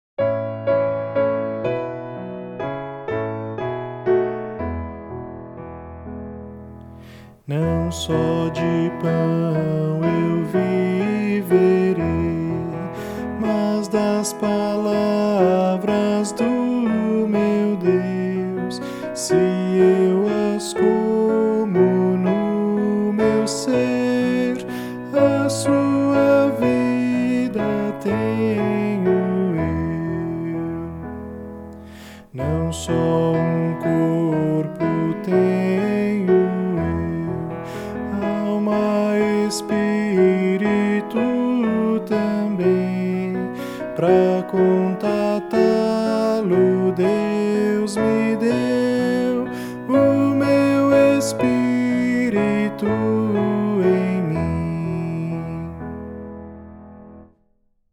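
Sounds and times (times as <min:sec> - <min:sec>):
piano: 0:00.0 - 0:57.9
person singing: 0:07.0 - 0:56.1.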